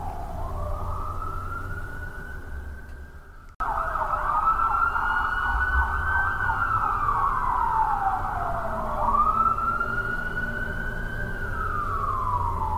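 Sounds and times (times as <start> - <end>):
busy city ambience: 0.0 - 12.7
police siren in busy city: 0.0 - 12.7.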